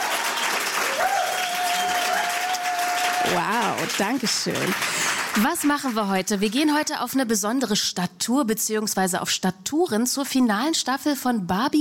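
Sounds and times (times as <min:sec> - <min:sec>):
studio audience applause at a live television show: 0:00.0 - 0:06.6
speech: 0:03.2 - 0:11.7.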